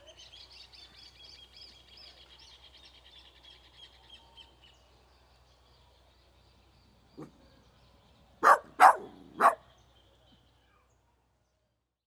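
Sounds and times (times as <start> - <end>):
dog barking outdoors in village at Playa Pascual Uruguay by day: 8.4 - 9.6.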